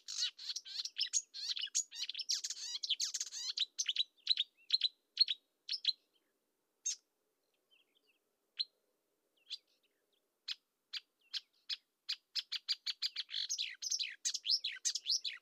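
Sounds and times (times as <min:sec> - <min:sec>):
marsh warbler Acrocephalus palustris palustris singing: 0:00.0 - 0:06.0, 0:10.5 - 0:15.4.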